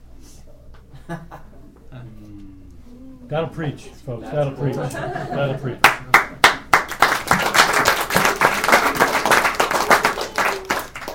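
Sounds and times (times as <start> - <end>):
speech: 1.1 - 2.6, 3.3 - 6.1
laughter: 4.2 - 6.4
baby clapping hands: 6.4 - 11.1.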